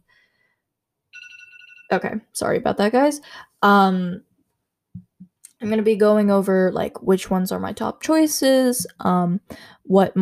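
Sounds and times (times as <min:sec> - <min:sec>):
phone alarm ringtone: 0:01.2 - 0:02.0
speech: 0:01.9 - 0:04.3, 0:05.6 - 0:10.2.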